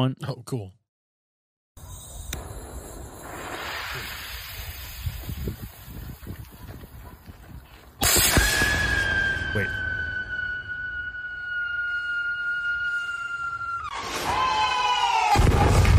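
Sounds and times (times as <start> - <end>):
speech: 0.0 - 0.8
firework engineered to sound like screaming: 1.8 - 5.8, 8.0 - 15.9.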